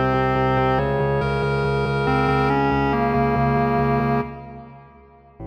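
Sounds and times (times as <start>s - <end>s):
clarinet choir playing: 0.0s - 5.2s.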